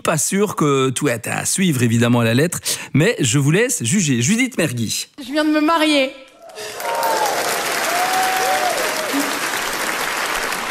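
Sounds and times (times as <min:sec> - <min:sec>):
speech: 0:00.0 - 0:07.2
applause: 0:06.4 - 0:10.6.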